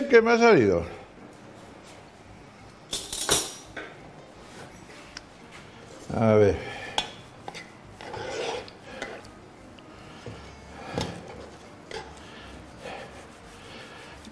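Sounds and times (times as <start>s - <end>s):
speech: 0.1s - 1.0s, 6.1s - 6.8s
onion pressed and crushed in the pan while cooking: 7.0s - 9.4s, 11.0s - 14.2s.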